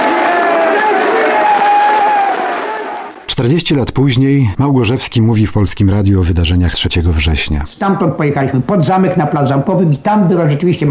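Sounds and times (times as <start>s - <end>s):
crowd of thousands: 0.0s - 3.4s
speech: 3.4s - 10.8s.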